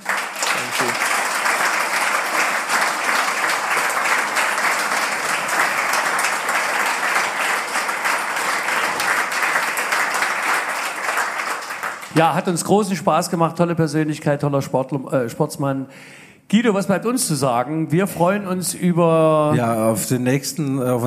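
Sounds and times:
sustained audience applause: 0.0s - 12.6s
speech: 12.2s - 21.0s.

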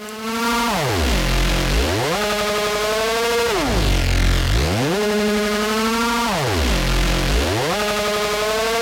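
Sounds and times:
heavily distorted music: 0.8s - 8.6s.

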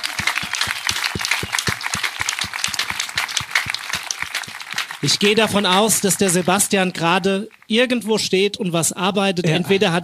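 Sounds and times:
audience applause: 0.0s - 7.7s
speech: 5.0s - 10.0s.

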